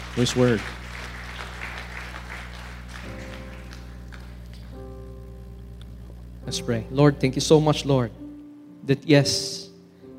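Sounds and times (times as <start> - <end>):
audience clapping: 0.0 - 5.0
sustained keyboard chords: 0.0 - 10.1
speech: 0.2 - 0.8, 6.5 - 8.2, 8.8 - 9.6.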